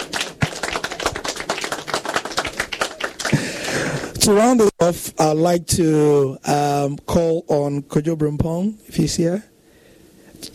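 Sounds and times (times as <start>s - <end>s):
audience clapping: 0.0s - 4.2s
speech: 4.2s - 9.5s.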